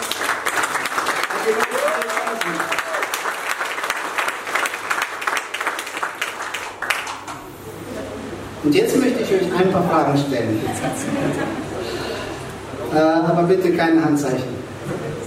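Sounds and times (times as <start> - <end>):
audience applause: 0.0 - 7.6
laughter: 7.7 - 12.5
speech: 8.6 - 11.6, 12.9 - 15.0.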